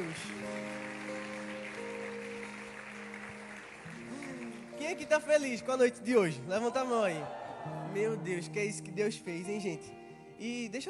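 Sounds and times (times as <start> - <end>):
audience applauding: 0.0 - 8.5
speech: 4.9 - 10.8.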